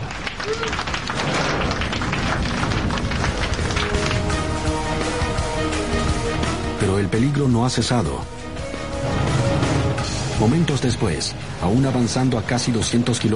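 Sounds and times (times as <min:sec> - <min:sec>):
airplane passengers applauding just after touchdown on the runway: 0:00.0 - 0:06.2
low rumbling background: 0:00.0 - 0:13.3
speech: 0:06.8 - 0:08.3, 0:10.4 - 0:13.3.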